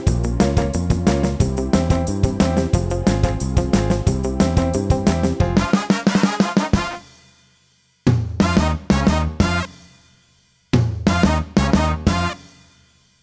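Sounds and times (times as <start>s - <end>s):
twist music medley: 0.0s - 7.3s, 8.4s - 9.9s, 11.0s - 12.6s.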